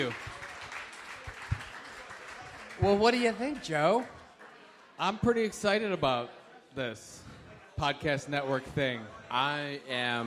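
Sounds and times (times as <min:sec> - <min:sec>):
speech: 0:00.0 - 0:00.3, 0:02.8 - 0:04.2, 0:05.0 - 0:10.2
audience round of applause: 0:00.0 - 0:05.4.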